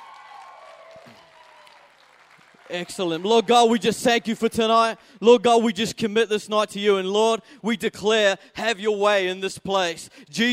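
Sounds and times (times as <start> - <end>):
church audience applause: 0.0 - 3.8
speech: 2.7 - 10.5.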